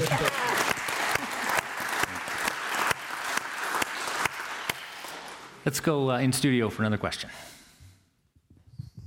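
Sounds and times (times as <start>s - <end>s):
audience clapping: 0.0s - 5.7s
speech: 5.6s - 7.5s.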